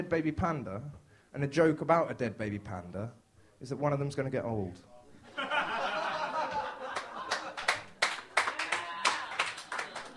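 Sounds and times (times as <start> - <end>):
speech: 0.0 - 5.7
laughter: 5.2 - 10.1
audience clapping: 6.5 - 10.1.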